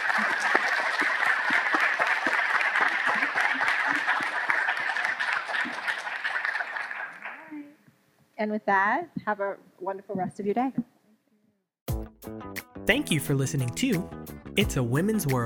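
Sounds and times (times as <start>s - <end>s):
audience applause: 0.0s - 7.6s
speech: 8.4s - 10.9s, 12.9s - 15.4s.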